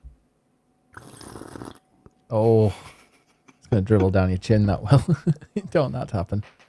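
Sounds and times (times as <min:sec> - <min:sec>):
person slurping a hot drink: 0:00.9 - 0:01.8
speech: 0:02.3 - 0:02.9, 0:03.8 - 0:06.6.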